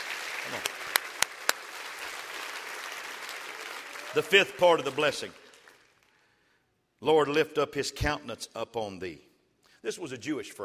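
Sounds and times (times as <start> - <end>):
audience clapping hands: 0.0 - 6.3
speech: 0.5 - 0.7, 4.1 - 5.4, 7.0 - 10.6.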